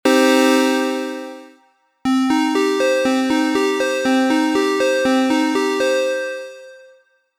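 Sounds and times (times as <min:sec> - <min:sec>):
arpeggio: 0:00.1 - 0:06.8.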